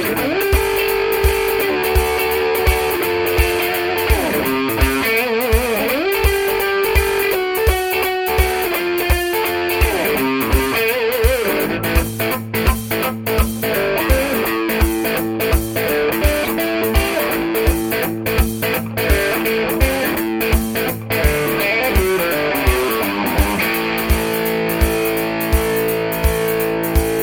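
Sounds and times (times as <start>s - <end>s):
high-gain guitar on bridge and neck pickups: 0.0s - 27.2s.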